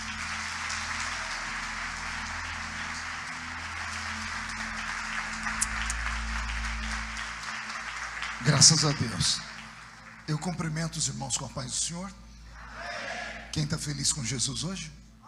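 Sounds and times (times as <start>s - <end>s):
church congregation applause: 0.0s - 11.1s
speech: 8.4s - 9.5s, 10.3s - 12.3s, 13.5s - 15.0s.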